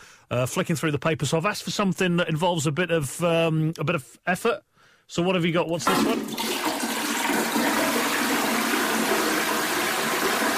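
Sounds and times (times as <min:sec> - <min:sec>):
speech: 0:00.3 - 0:06.5
toilet flushing: 0:05.8 - 0:10.5.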